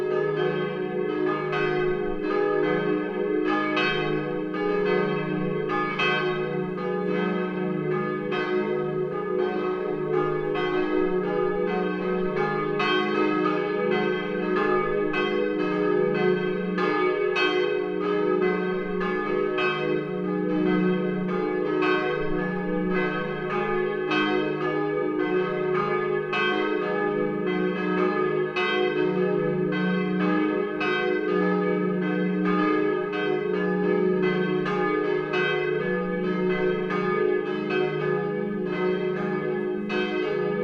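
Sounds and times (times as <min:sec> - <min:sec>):
Petrikirche church bells: 0:00.0 - 0:40.6.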